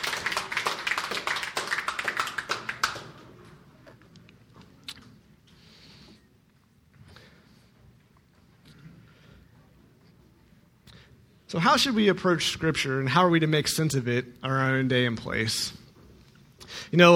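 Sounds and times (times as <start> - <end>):
audience applauding: 0.0 - 3.5
speech: 11.5 - 15.8, 16.9 - 17.1.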